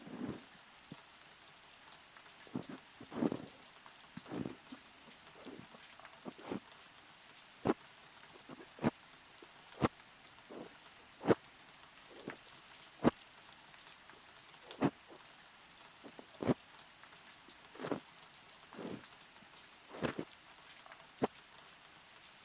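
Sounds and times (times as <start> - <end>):
ear cleaning sounds: 0.0 - 0.4, 2.5 - 3.6, 4.2 - 6.6, 8.4 - 9.9, 10.5 - 11.4, 12.1 - 12.4, 14.6 - 15.2, 16.0 - 16.6, 17.8 - 18.0, 18.8 - 19.1, 19.9 - 20.3
ear massage sounds: 0.0 - 0.4, 2.5 - 3.6, 4.2 - 6.6, 8.4 - 11.4, 12.1 - 13.2, 14.6 - 15.2, 16.0 - 16.6, 17.8 - 18.0, 18.8 - 19.1, 19.9 - 20.3
rain: 0.0 - 22.4.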